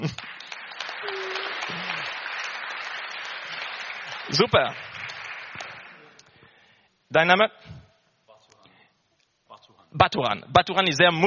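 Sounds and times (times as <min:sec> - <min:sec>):
audience applause: 0:00.0 - 0:06.3
speech: 0:04.3 - 0:04.9, 0:07.1 - 0:07.8, 0:10.0 - 0:11.2.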